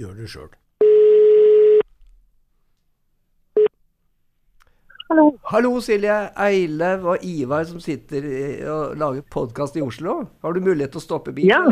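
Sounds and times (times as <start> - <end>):
speech: 0.0 - 0.6, 5.1 - 11.7
telephone ringing tone while calling: 0.8 - 1.8.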